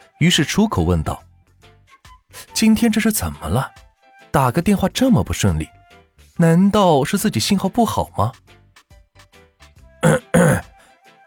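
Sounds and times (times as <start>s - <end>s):
speech: 0.2s - 1.3s, 2.6s - 3.8s, 4.4s - 5.8s, 6.4s - 8.6s
choking cough: 10.0s - 10.8s
throat clearing: 10.0s - 10.8s.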